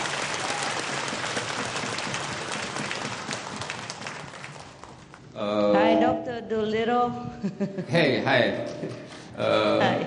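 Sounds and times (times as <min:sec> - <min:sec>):
audience applause: 0:00.0 - 0:05.3
speech: 0:06.2 - 0:10.0.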